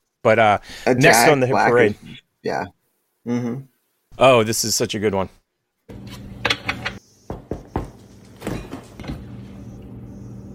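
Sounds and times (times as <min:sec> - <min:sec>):
speech: 0:00.2 - 0:06.2
knocking on a fridge: 0:07.3 - 0:08.6.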